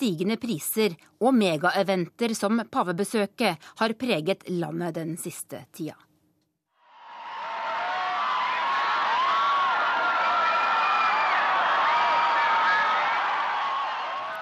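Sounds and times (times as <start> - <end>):
speech: 0.0 - 6.1
large crowd cheering: 6.8 - 14.4
shrill whoops and high calls: 6.9 - 14.4.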